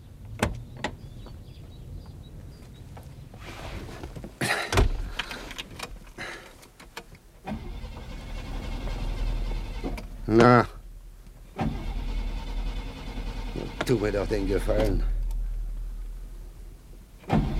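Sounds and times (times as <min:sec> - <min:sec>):
flooded car engine cranking without catching after a crash: 0:04.6 - 0:16.3, 0:17.1 - 0:17.5
speech: 0:10.3 - 0:10.7, 0:13.9 - 0:15.1.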